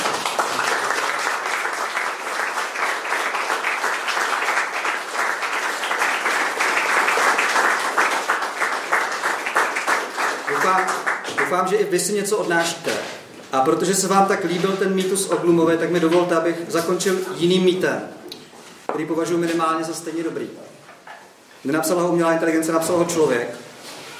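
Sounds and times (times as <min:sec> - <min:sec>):
audience applause: 0:00.0 - 0:11.6
speech: 0:11.5 - 0:18.2, 0:19.0 - 0:20.6, 0:21.6 - 0:23.6.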